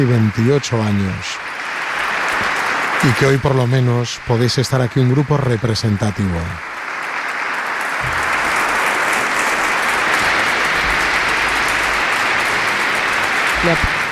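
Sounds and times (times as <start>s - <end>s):
speech: 0.0s - 1.5s, 3.0s - 6.7s, 13.6s - 13.9s
group of priests applauding at ceremony: 0.0s - 14.0s.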